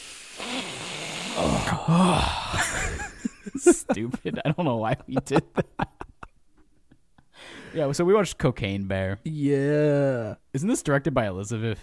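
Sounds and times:
voices imitating snorting with loud nasal sniffs: 0:00.0 - 0:01.5
speech: 0:01.4 - 0:06.0, 0:07.7 - 0:11.8
laughter: 0:02.5 - 0:07.0.

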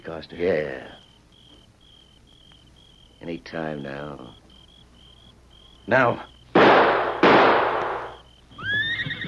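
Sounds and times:
speech: 0:00.1 - 0:01.0, 0:03.2 - 0:04.4, 0:05.9 - 0:06.3
rifle shots: 0:06.6 - 0:08.2
horse whinnying: 0:08.6 - 0:09.2.

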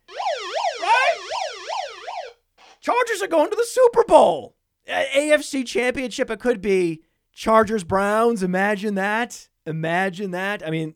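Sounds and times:
alarm wailing: 0:00.0 - 0:02.4
speech: 0:03.0 - 0:10.9.

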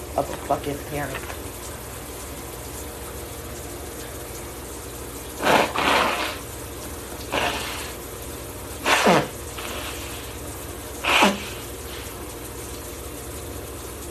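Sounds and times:
speech: 0:00.2 - 0:01.4
person blowing their nose: 0:05.4 - 0:06.5, 0:07.3 - 0:08.0, 0:08.8 - 0:12.2.

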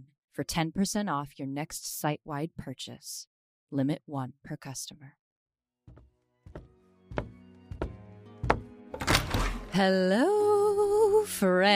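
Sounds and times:
speech: 0:00.4 - 0:05.2, 0:09.8 - 0:11.7
creaking door: 0:05.9 - 0:09.7.

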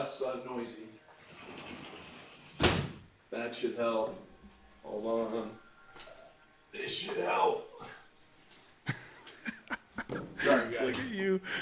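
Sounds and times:
speech: 0:00.0 - 0:01.9, 0:03.3 - 0:06.1, 0:06.7 - 0:08.0, 0:09.7 - 0:11.6
door closing: 0:02.4 - 0:03.1
laughter: 0:08.9 - 0:11.6.

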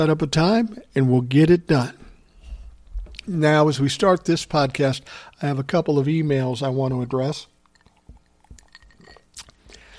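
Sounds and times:
speech: 0:00.0 - 0:02.0, 0:03.2 - 0:07.5
person drinking water from a glass: 0:07.6 - 0:09.9
glass clinking: 0:07.7 - 0:09.3.

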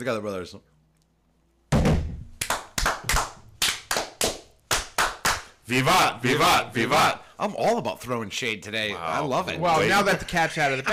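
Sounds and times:
speech: 0:00.0 - 0:00.8, 0:05.7 - 0:10.9
masonic ritual hand clapping in unison called fire: 0:02.4 - 0:05.6.

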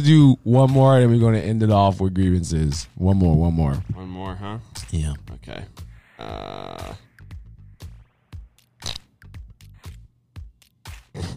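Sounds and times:
speech: 0:00.0 - 0:07.1, 0:11.2 - 0:11.3
fart sound: 0:06.1 - 0:07.1, 0:08.8 - 0:09.1.

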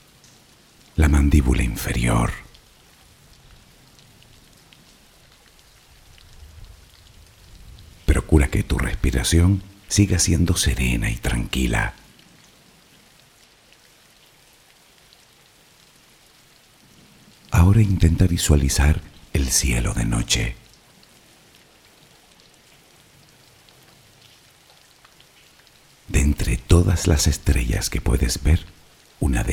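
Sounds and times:
steady soft rain: 0:00.0 - 0:29.5
speech: 0:01.0 - 0:02.5, 0:08.5 - 0:12.0, 0:17.8 - 0:20.7, 0:27.0 - 0:29.5.

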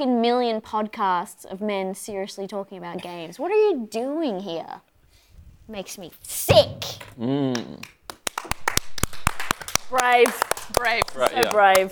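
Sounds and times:
speech: 0:00.0 - 0:04.9, 0:05.7 - 0:08.0, 0:09.9 - 0:11.9
few people clapping: 0:07.5 - 0:11.9.

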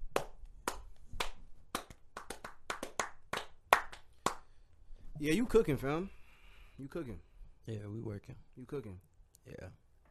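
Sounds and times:
sharp hand claps after a song performance: 0:00.0 - 0:04.6
speech: 0:05.2 - 0:06.2, 0:06.8 - 0:09.8.

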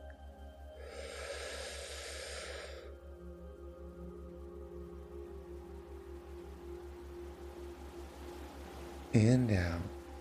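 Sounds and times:
deep breath drawn in during a guided meditation: 0:00.8 - 0:02.9
speech: 0:09.2 - 0:10.0.

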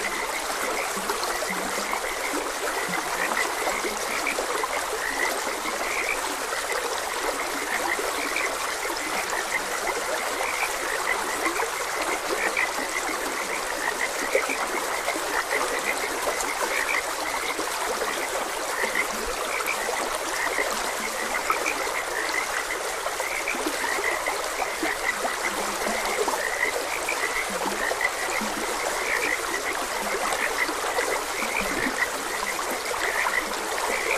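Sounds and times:
frogs croaking in a chorus: 0:00.0 - 0:34.1
stream trickling and rushing: 0:00.0 - 0:34.1.

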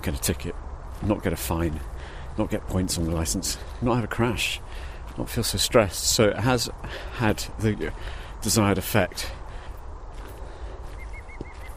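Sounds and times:
speech: 0:00.0 - 0:09.4
green woodpecker call: 0:11.0 - 0:11.7.

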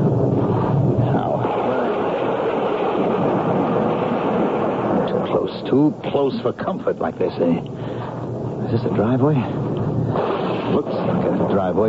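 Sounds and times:
heavy rain during a thunderstorm: 0:00.0 - 0:11.8
speech: 0:05.7 - 0:07.8, 0:08.7 - 0:09.7, 0:10.7 - 0:11.8.

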